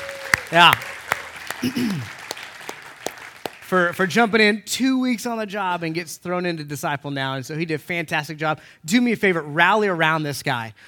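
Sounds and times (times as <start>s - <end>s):
crowd applauding: 0.0s - 4.0s
speech: 0.5s - 0.9s, 1.6s - 2.2s, 3.7s - 10.8s.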